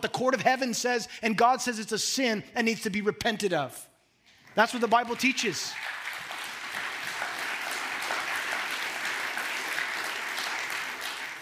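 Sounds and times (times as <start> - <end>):
speech: 0.0 - 3.9, 4.6 - 6.0
audience applause: 4.7 - 11.4.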